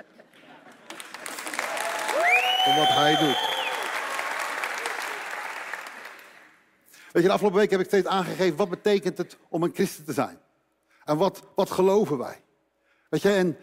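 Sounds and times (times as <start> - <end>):
audience applause: 0.6 - 6.6
speech: 2.7 - 3.5, 7.2 - 10.4, 11.1 - 12.4, 13.1 - 13.6.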